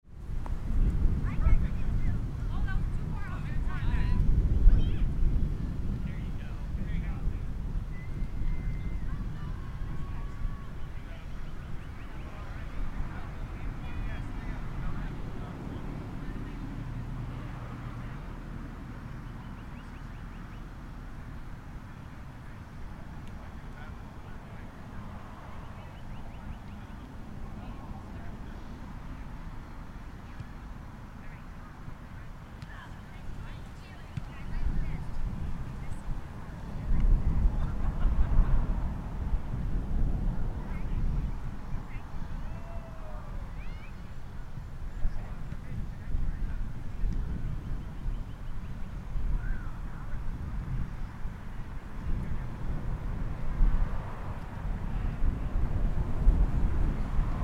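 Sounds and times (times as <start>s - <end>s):
suburban park ambience: 0.1s - 57.4s.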